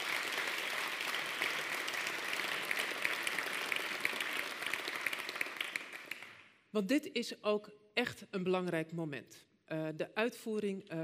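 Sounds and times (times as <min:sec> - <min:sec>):
applause for the people thanked: 0:00.0 - 0:06.6
speech: 0:06.8 - 0:11.0.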